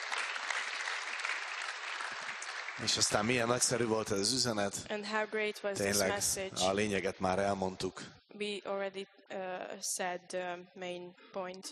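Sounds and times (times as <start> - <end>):
church congregation clapping after a sermon: 0.0 - 4.1
speech: 2.8 - 11.7.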